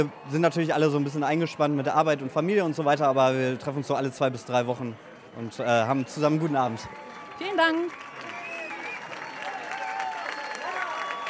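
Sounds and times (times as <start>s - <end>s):
speech: 0.0s - 8.0s
people clapping after a song: 6.2s - 11.2s.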